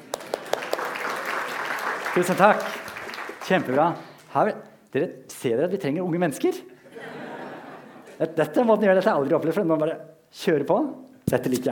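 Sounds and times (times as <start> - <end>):
audience applause: 0.0 - 4.0
speech: 2.2 - 2.8, 3.4 - 6.7, 8.2 - 11.7
laughter: 6.8 - 8.2.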